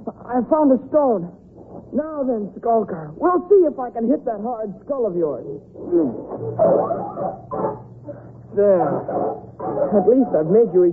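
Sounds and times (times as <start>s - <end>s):
speech: 0.3s - 10.9s
wolves snarling and barking: 6.3s - 7.9s, 8.8s - 10.7s.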